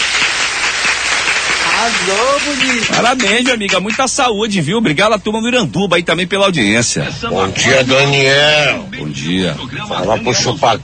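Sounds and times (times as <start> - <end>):
applause from many people: 0.0 - 4.2
speech: 1.8 - 10.8.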